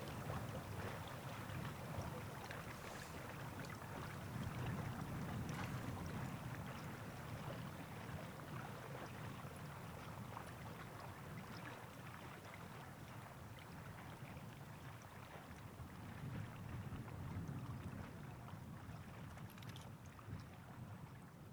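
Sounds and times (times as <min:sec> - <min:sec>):
iced water: 0:00.0 - 0:06.3
wind: 0:00.0 - 0:16.0, 0:16.8 - 0:20.7.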